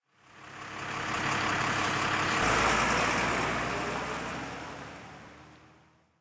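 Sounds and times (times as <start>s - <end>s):
truck: 0.0s - 6.1s.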